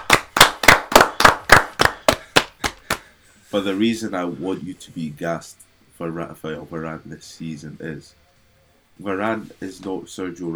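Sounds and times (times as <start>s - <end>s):
hand claps: 0.0s - 3.1s
speech: 3.5s - 8.2s, 9.0s - 10.5s.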